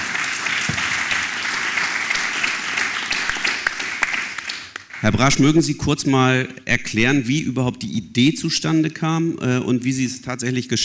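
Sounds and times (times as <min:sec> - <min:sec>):
audience applause: 0:00.0 - 0:05.4
speech: 0:05.0 - 0:10.8.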